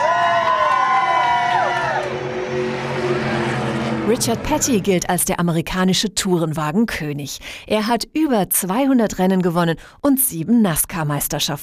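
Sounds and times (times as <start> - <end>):
race fans cheering: 0.0 - 4.7
high-pitched engine whine sweeping past: 0.0 - 6.0
speech: 4.1 - 11.6.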